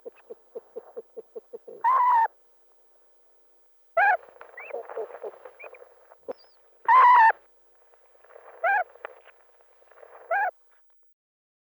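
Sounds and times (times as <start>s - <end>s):
corn crake giving harsh grating paired rasps: 0.0s - 2.3s, 4.0s - 7.4s, 8.6s - 8.9s, 10.2s - 10.6s.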